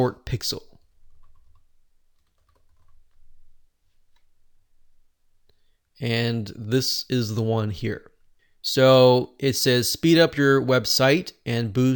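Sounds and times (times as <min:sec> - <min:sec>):
speech: 0:00.0 - 0:00.7, 0:06.0 - 0:11.9
keystrokes on a computer keyboard typing plugin names: 0:02.2 - 0:03.1.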